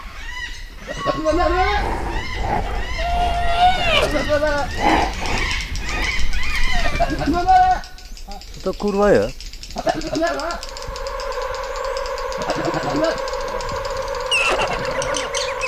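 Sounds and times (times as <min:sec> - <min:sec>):
soundscape: 0:00.3 - 0:08.3, 0:09.7 - 0:15.6.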